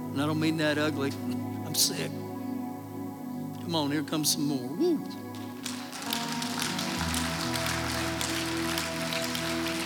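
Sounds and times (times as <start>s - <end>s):
speech: 0.1s - 2.3s, 3.7s - 5.3s
audience applauding: 5.3s - 9.8s.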